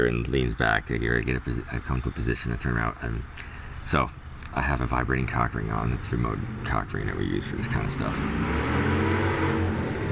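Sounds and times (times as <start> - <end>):
speech: 0.0 - 9.0
motorcycle with loud pipes passing outside: 8.0 - 10.0.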